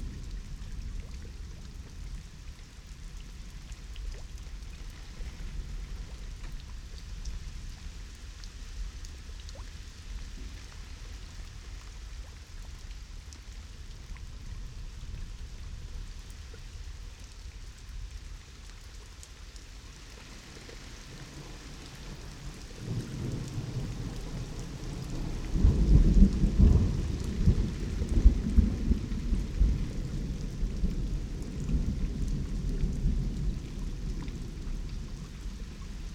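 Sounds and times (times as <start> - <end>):
thunder: 22.9 - 36.1.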